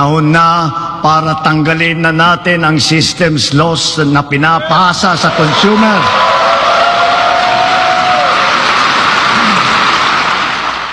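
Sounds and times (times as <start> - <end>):
speech: 0.0 - 6.7
large crowd applauding and cheering in a standing ovation: 5.2 - 10.9.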